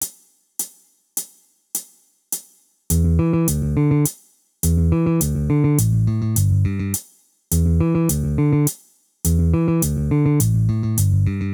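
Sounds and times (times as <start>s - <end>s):
bass: 2.9s - 11.5s.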